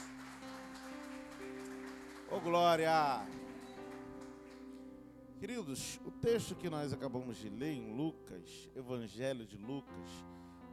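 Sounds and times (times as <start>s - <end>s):
audience applauding: 0.0s - 4.8s
speech: 2.3s - 3.4s, 5.4s - 10.4s.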